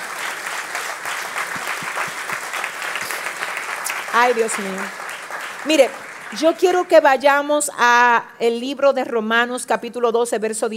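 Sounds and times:
loud applause: 0.0 - 7.2
speech: 4.2 - 5.0, 5.6 - 10.7.

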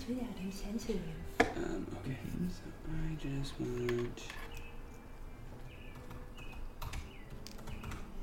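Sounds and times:
speech: 0.1 - 1.3, 2.5 - 4.4
faint tapping of fingers on a computer keyboard: 5.9 - 8.1.

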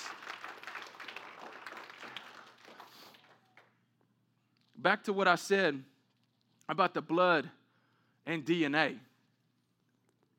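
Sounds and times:
audience clapping in praise: 0.0 - 3.9
speech: 4.8 - 5.9, 6.7 - 7.6, 8.2 - 9.1.

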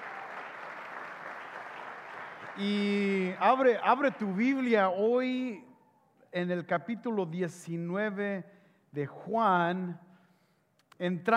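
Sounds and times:
audience applause: 0.0 - 4.7
speech: 2.6 - 5.7, 6.3 - 10.0, 11.0 - 11.3.

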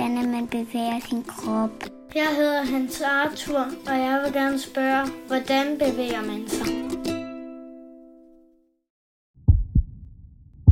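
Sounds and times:
speech: 0.4 - 7.0
heartbeat: 9.4 - 10.6.

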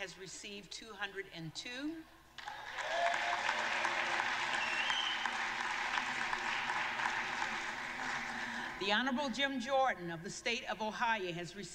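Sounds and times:
speech: 0.0 - 3.0, 8.8 - 11.7
crowd applause: 2.4 - 8.8.

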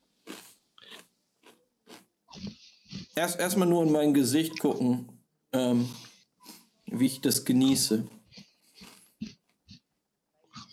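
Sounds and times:
Pringles Cheeseburger chips crunching as someone bites and chews: 0.2 - 2.1, 8.7 - 9.2
speech: 3.2 - 6.0, 7.0 - 8.2.

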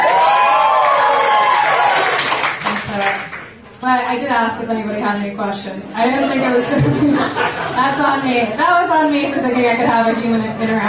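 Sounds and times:
live audience cheering, whooping and clapping: 0.0 - 3.5
speech: 3.9 - 10.8
laughter: 6.0 - 10.8.

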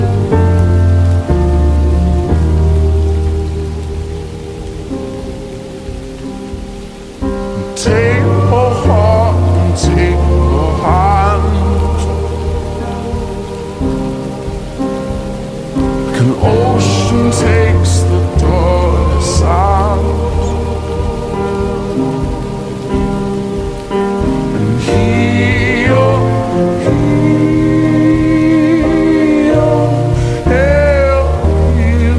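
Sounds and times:
rain: 0.0 - 32.1
slow moody dark academia music: 0.0 - 32.1.

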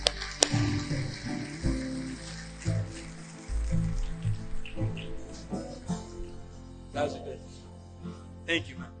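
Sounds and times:
loud audience applause: 0.0 - 5.9
speech: 8.5 - 8.9.

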